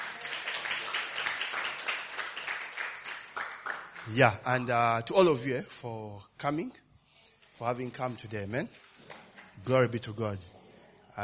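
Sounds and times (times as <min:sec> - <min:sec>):
audience hand clapping: 0:00.0 - 0:04.4
speech: 0:04.1 - 0:06.8, 0:07.6 - 0:08.8, 0:09.6 - 0:10.5.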